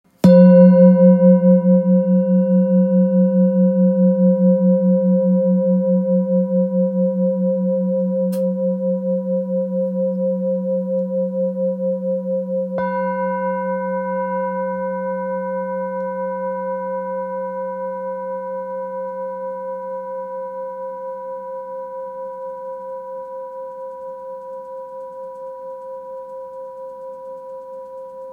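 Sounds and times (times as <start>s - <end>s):
Tibetan singing bowl in D: 0.1s - 28.3s.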